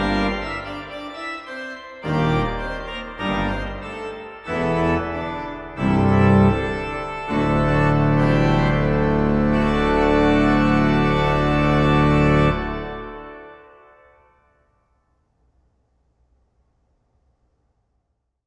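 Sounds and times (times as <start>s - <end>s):
organist playing organum: 0.0s - 14.3s.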